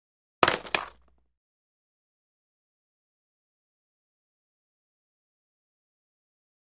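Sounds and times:
single roller blade dropped: 0.4s - 1.1s.

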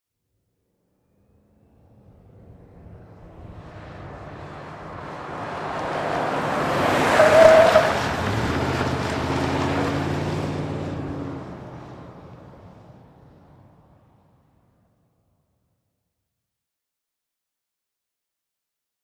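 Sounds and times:
Ford Expedition driving fast around a corner: 1.1s - 14.6s.

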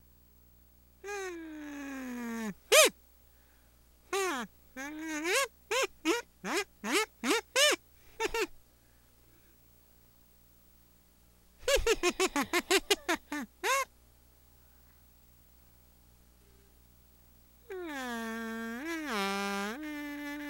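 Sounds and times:
kazoo buzzing like a talking fly: 1.0s - 3.0s, 4.1s - 8.6s, 11.6s - 13.9s, 17.6s - 20.4s.

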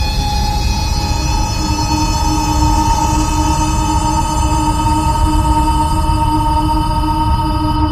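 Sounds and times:
starship warp drive: 0.0s - 7.8s.

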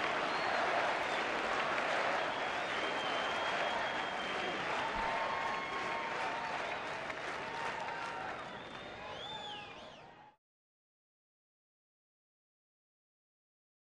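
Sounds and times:
crowd of 50000 whistling in a large interior: 0.0s - 10.4s.

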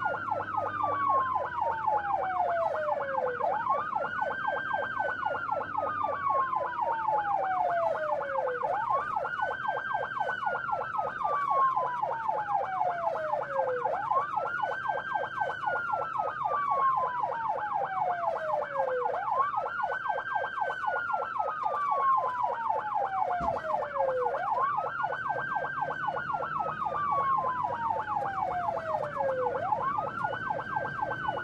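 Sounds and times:
ambulance interior: 0.0s - 31.4s.

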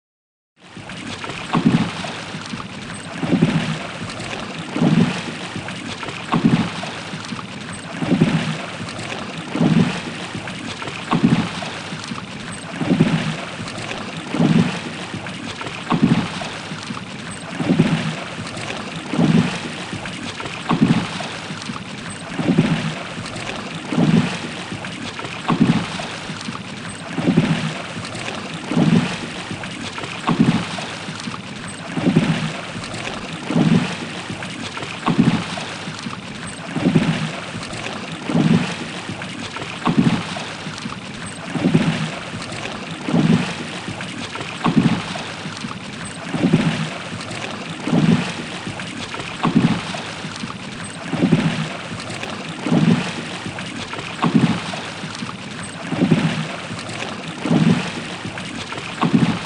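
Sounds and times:
constant rowing of a rowboat or canoe: 0.6s - 59.4s.

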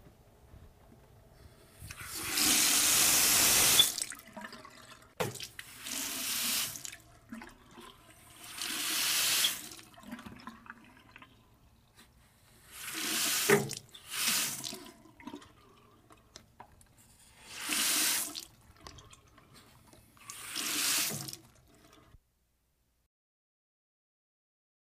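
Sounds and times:
water running from a pipe faucet: 1.9s - 11.2s, 12.7s - 15.8s, 17.4s - 19.1s, 20.2s - 22.0s.

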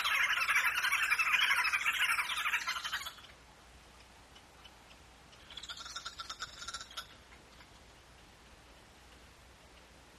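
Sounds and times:
wood hoopoe cackling: 0.0s - 3.3s, 5.4s - 7.1s.

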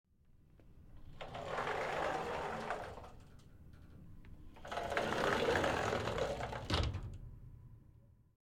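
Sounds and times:
glass shower or mirror closet door sliding open and closed: 0.8s - 7.2s.

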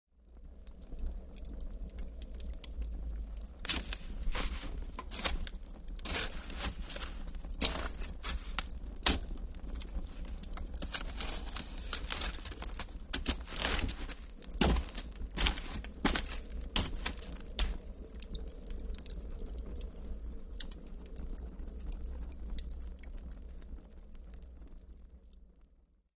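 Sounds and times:
fireplace stirred with a poker: 0.3s - 24.7s.

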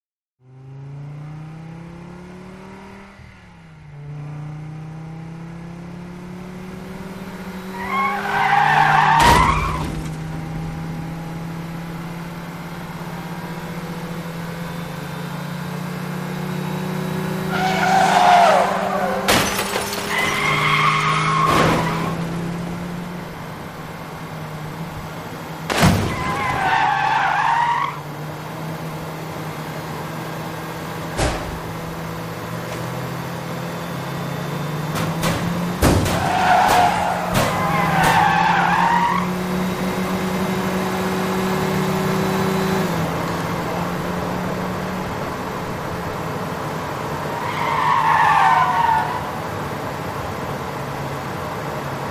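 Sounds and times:
two vehicles driving at high speed: 0.4s - 52.1s
vehicles broadsiding each other off road: 7.7s - 12.6s, 17.5s - 28.1s, 30.0s - 44.2s.

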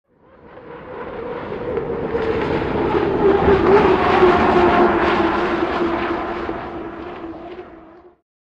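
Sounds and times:
hydroplane boat: 0.1s - 8.2s.

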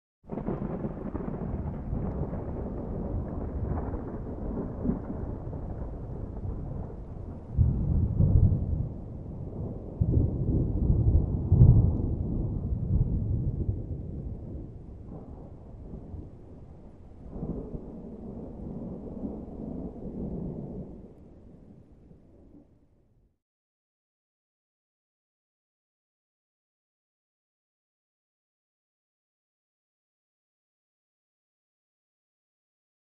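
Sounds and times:
light rain: 0.3s - 22.9s
medium distant thunder crackle and rumble: 0.3s - 23.0s.

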